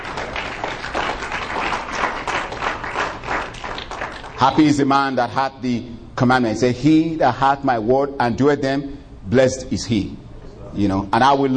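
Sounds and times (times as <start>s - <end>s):
audience hand clapping: 0.0s - 4.6s
speech: 4.4s - 11.5s.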